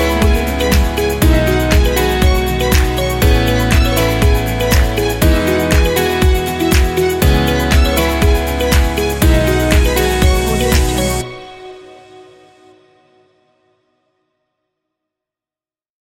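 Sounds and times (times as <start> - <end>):
motivational pop music: 0.0 - 12.7.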